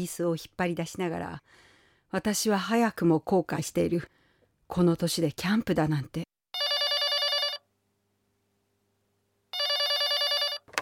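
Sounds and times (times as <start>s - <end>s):
speech: 0.0s - 6.2s
telephone bell ringing: 6.6s - 7.7s, 9.5s - 10.7s.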